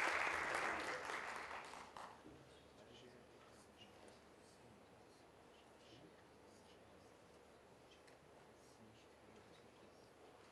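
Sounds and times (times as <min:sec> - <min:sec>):
audience applause: 0:00.0 - 0:02.2.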